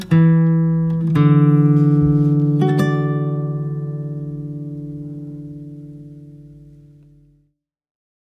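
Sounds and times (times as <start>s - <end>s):
waltz and Ländler backing track without melody: 0.1s - 4.9s.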